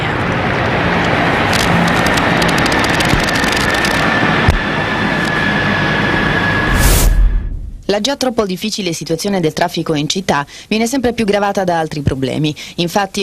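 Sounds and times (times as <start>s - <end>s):
Italian Navy military helicopters flying overhead: 0.0s - 7.9s
speech: 8.0s - 13.2s.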